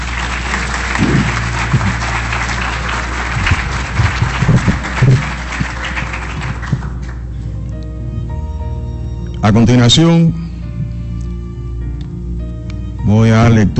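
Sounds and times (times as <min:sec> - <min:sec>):
audience applause: 0:00.0 - 0:07.3
speech: 0:09.4 - 0:10.5, 0:13.1 - 0:13.7.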